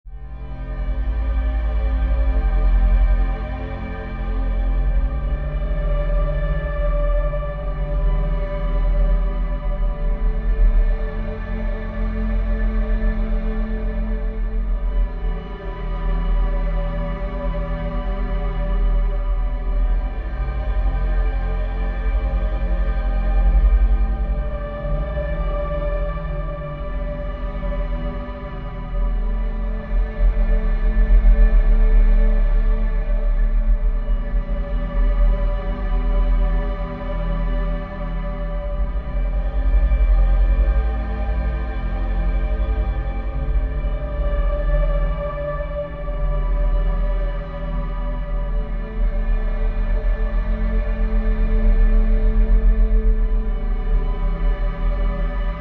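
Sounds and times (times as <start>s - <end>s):
ambient music: 0.1s - 55.6s.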